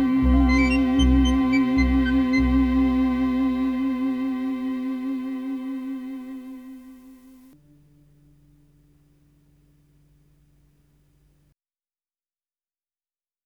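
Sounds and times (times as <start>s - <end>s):
xun vessel flute playing: 0.0s - 5.6s.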